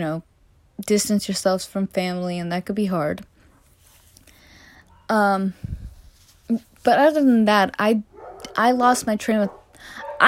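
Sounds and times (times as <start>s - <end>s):
speech: 0.0s - 3.3s, 5.1s - 5.8s, 6.5s - 10.2s
dogs barking: 8.1s - 8.6s, 9.4s - 10.2s.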